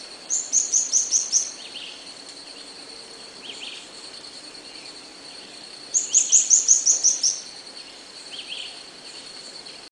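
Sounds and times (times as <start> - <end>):
faint insect-like noise: 0.0 - 9.9
steady high hiss: 0.0 - 9.9
bird calling with high sharp chirps: 0.3 - 9.9.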